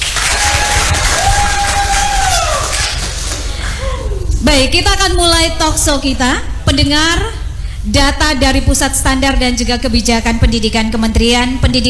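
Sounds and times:
audience applause and cheering: 0.0s - 4.2s
speech: 4.5s - 11.8s.

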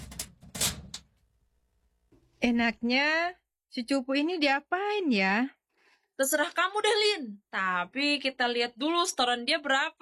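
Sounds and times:
door being locked: 0.0s - 1.1s
speech: 2.4s - 5.6s, 6.2s - 10.0s.

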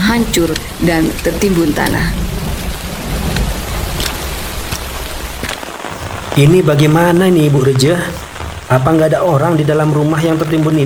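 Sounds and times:
light rain falling at dawn: 0.0s - 10.8s
speech: 0.2s - 2.4s, 6.4s - 10.8s
raindrops tapping: 4.0s - 10.8s.

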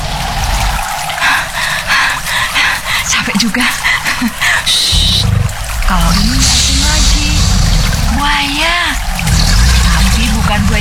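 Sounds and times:
river water flowing: 0.0s - 10.8s.

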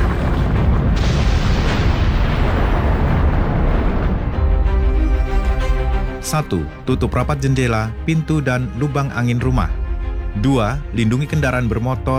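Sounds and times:
volcanic eruption boom: 0.0s - 6.2s
speech: 6.3s - 9.8s, 10.4s - 12.1s.

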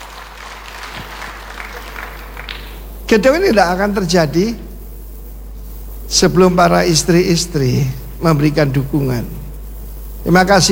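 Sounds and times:
church congregation clapping: 0.0s - 3.7s
speech: 3.1s - 4.6s, 6.1s - 9.4s, 10.2s - 10.7s.

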